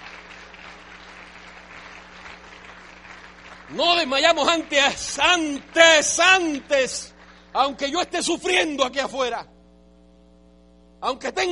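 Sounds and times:
audience applause: 0:00.0 - 0:07.8
faint low hum: 0:00.0 - 0:11.5
speech: 0:03.7 - 0:09.5, 0:11.0 - 0:11.5.

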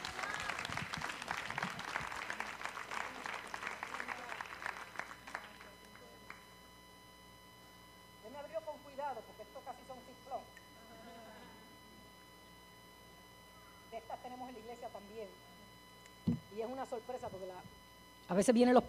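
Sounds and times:
audience applause: 0:00.0 - 0:05.7
faint sustained tone: 0:05.6 - 0:18.4.

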